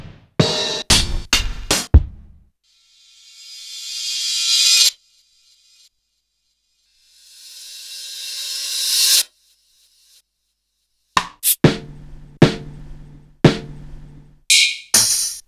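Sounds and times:
Roland XV5080 rust drum set: 0.4 - 2.3, 11.4 - 15.4.

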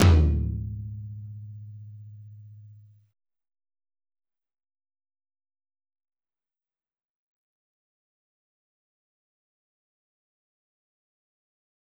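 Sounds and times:
tom drum in G sharp minor: 0.0 - 2.5.

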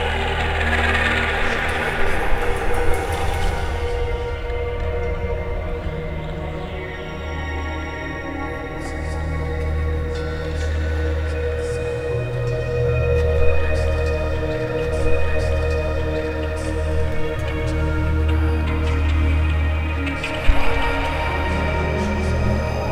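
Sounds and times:
synth voice percussion soundscape: 0.0 - 22.9.

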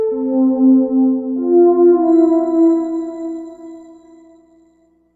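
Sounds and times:
fresh flute-like synth: 0.1 - 4.4
synths: 2.0 - 4.3.

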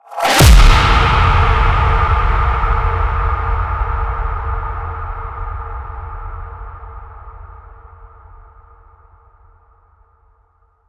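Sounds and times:
impact: 0.1 - 7.3.

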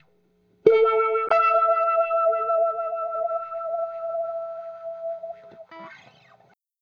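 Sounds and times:
FX guitar: 0.0 - 6.6.

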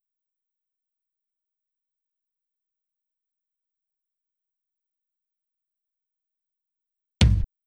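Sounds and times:
tom drum loop: 7.2 - 7.5.

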